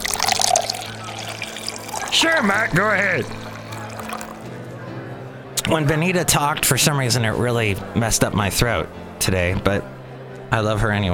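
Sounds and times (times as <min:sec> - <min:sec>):
root beer being poured: 0:00.0 - 0:04.5
speech: 0:02.2 - 0:03.4, 0:05.7 - 0:11.1.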